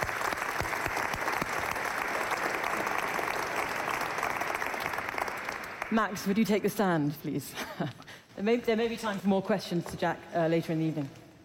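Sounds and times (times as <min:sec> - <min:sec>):
audience applause: 0:00.0 - 0:06.6
speech: 0:05.9 - 0:11.2.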